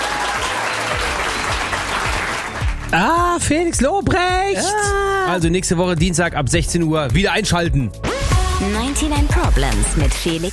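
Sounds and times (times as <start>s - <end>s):
audience applause: 0.0s - 3.3s
speech: 2.9s - 10.5s.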